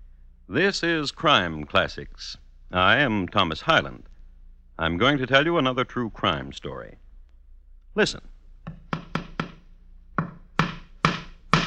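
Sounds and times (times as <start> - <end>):
speech: 0.5 - 4.1, 4.8 - 7.0, 8.0 - 8.8
hammer striking a nail into a wall: 8.6 - 11.6.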